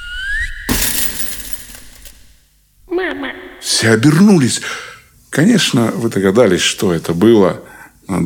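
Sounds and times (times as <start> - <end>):
rising whistling tone: 0.0 - 0.7
glass chandelier crashing down after a dragon strikes it: 0.7 - 2.4
speech: 3.7 - 8.2.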